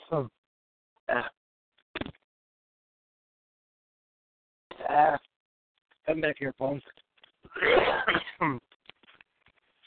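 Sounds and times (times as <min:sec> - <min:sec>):
speech: 0:00.1 - 0:00.4, 0:06.1 - 0:08.7
throat clearing: 0:07.5 - 0:08.6.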